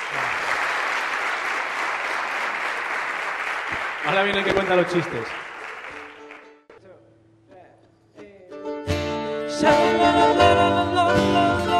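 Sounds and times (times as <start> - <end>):
audience applauding: 0.0 - 6.7
speech: 4.0 - 5.4, 9.6 - 11.4.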